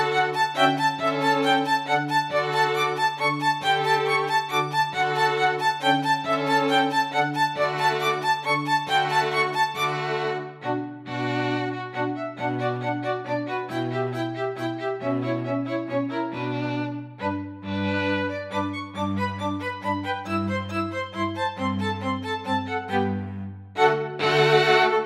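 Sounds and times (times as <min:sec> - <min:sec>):
two violins and bass playing a dance: 0:00.0 - 0:25.0.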